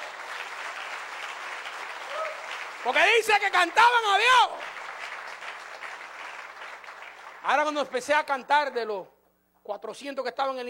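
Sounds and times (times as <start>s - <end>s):
church congregation applause: 0.0s - 8.2s
speech: 2.8s - 4.7s, 7.4s - 10.6s.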